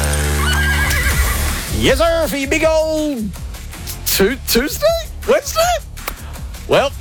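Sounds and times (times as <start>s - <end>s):
horse neighing sound effect: 0.1s - 1.7s
speech: 1.8s - 3.5s, 4.2s - 5.9s, 6.7s - 6.9s.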